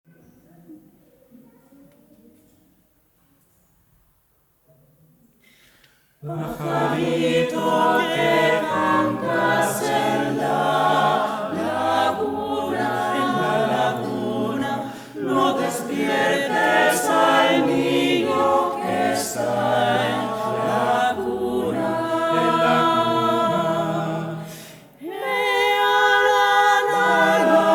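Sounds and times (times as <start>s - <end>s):
choir vocals: 6.2s - 27.7s.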